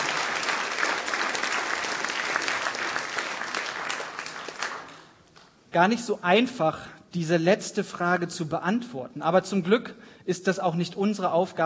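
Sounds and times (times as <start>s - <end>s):
audience applause: 0.0s - 5.1s
speech: 5.7s - 11.6s.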